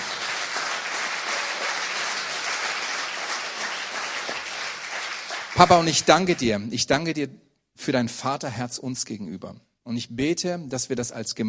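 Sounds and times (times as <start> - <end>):
audience applause: 0.0 - 6.5
speech: 5.6 - 11.4.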